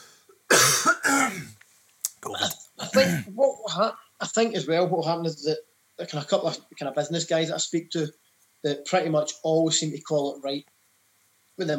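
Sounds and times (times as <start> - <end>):
person coughing and choking: 0.5 - 1.6, 2.3 - 3.3
speech: 2.2 - 10.7, 11.6 - 11.7.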